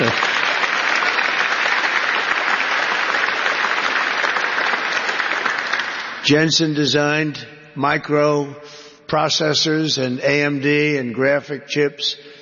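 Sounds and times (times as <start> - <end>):
audience applause: 0.0 - 6.3
speech: 6.3 - 12.3.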